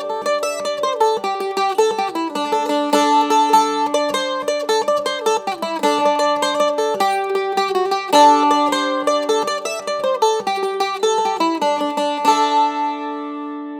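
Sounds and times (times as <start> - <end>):
mandolin: 0.0 - 13.7.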